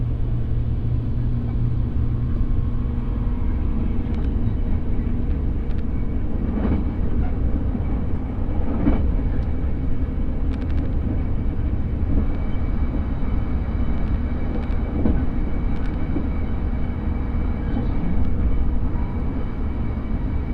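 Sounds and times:
moving train rumble: 0:00.0 - 0:20.5.

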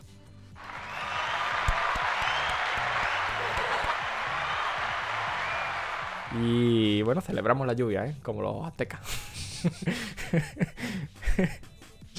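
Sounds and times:
applause sound effect: 0:00.6 - 0:07.0
laughter: 0:00.7 - 0:06.2, 0:09.1 - 0:11.6
speech: 0:06.4 - 0:11.7.

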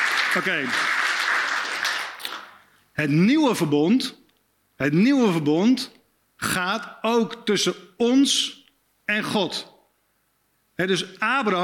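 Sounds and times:
audience applause for volunteers: 0:00.0 - 0:02.6
speech: 0:00.4 - 0:01.0, 0:03.0 - 0:04.2, 0:04.8 - 0:09.7, 0:10.8 - 0:11.6.

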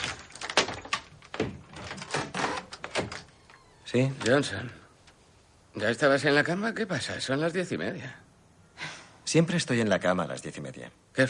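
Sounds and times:
door being opened ajar: 0:00.0 - 0:05.2
speech: 0:03.9 - 0:04.8, 0:05.8 - 0:08.2, 0:09.3 - 0:11.2.

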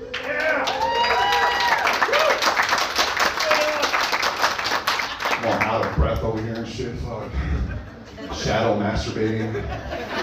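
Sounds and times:
audience applause: 0:00.0 - 0:06.7
laughter: 0:07.1 - 0:10.2
speech: 0:08.8 - 0:10.1.

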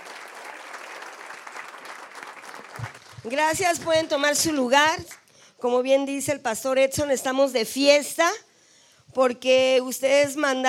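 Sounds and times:
audience applause: 0:00.0 - 0:04.0
speech: 0:03.2 - 0:08.4, 0:09.2 - 0:10.6.

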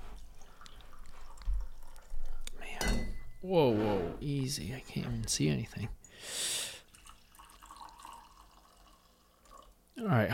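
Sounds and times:
pouring batch brew coffee: 0:00.0 - 0:02.5, 0:06.8 - 0:09.9
speech: 0:03.4 - 0:06.4, 0:10.0 - 0:10.3.

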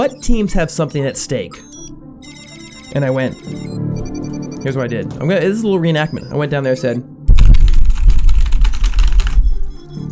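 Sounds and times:
speech: 0:00.0 - 0:01.8, 0:02.9 - 0:07.2
rapid typing on a computer keyboard: 0:07.4 - 0:09.9.

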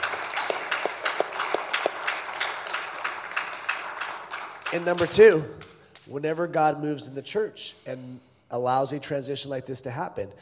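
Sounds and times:
audience round of applause: 0:00.0 - 0:05.4
speech: 0:04.7 - 0:10.3.

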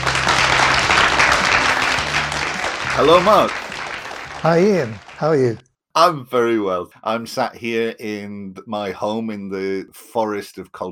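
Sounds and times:
round of applause: 0:00.0 - 0:05.6
speech: 0:03.0 - 0:03.6, 0:04.4 - 0:10.9.

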